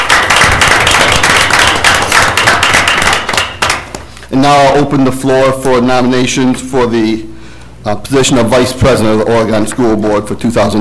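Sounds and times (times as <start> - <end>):
round of applause from a group: 0.0 - 4.1
speech: 4.3 - 10.7.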